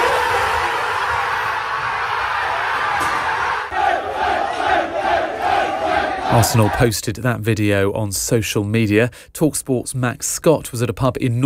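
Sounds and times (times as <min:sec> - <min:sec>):
Arsenal squad cheering on learning they are Premier League champions: 0:00.0 - 0:06.9
speech: 0:06.3 - 0:11.4.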